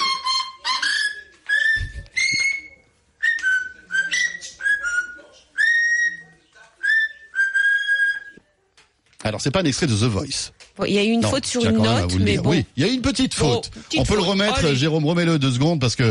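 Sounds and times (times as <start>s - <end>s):
parrot whistling a tune: 0.0s - 8.4s
speech: 9.3s - 16.0s.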